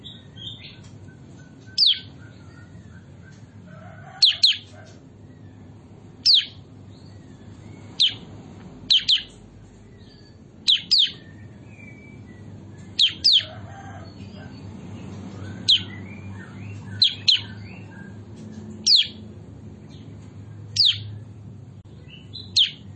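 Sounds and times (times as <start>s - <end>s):
bulbul chirping: 0.0s - 3.4s, 4.2s - 4.7s, 6.2s - 8.2s, 8.9s - 9.4s, 10.0s - 13.5s, 15.4s - 18.2s, 18.8s - 19.2s, 20.7s - 21.2s, 22.1s - 22.9s.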